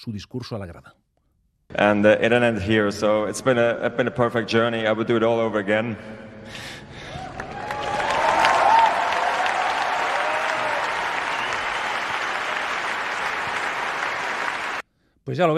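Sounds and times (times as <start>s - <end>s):
speech: 0.0s - 1.1s, 1.7s - 6.7s, 15.3s - 15.5s
faint cheers: 7.1s - 14.8s
large stadium crowd applauding: 7.1s - 14.8s.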